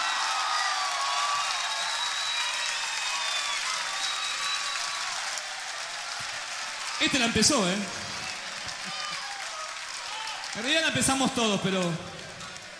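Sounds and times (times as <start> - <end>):
audience applause for guitarist: 0.0 - 12.7
whistles: 1.2 - 5.3
speech: 7.0 - 8.0, 10.6 - 12.1.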